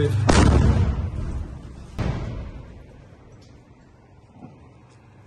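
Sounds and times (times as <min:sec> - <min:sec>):
Russian T-90 tank cannon fire at Ukrainian positions: 0:00.2 - 0:03.2.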